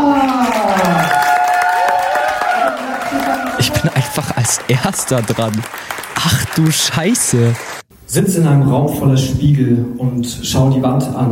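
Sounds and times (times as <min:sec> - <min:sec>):
audience applause: 0:00.1 - 0:07.8
speech: 0:04.6 - 0:11.2.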